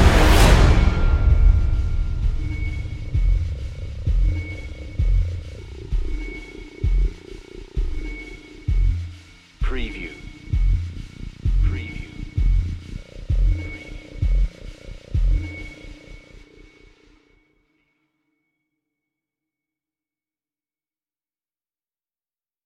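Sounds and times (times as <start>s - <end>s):
horror trailer music: 0.0s - 17.3s.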